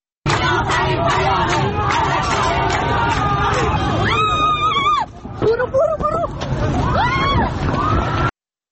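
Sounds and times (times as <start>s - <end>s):
crowd of protesters in Tehran babbling while fleeing security forces: 0.3s - 8.3s
protesters shouting and screaming: 1.6s - 8.3s.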